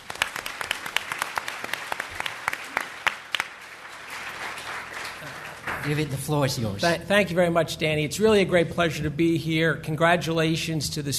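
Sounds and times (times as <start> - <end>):
audience applause welcoming a panel at the LSE SU China Development Forum 2014: 0.0 - 6.3
speech: 5.8 - 11.1.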